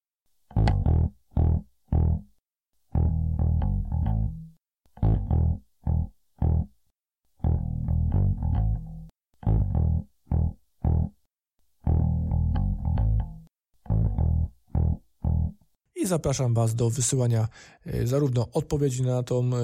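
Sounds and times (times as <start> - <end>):
bass guitar line played through distortion-like effects: 0.5 - 6.8, 7.4 - 15.7
speech: 16.0 - 19.6.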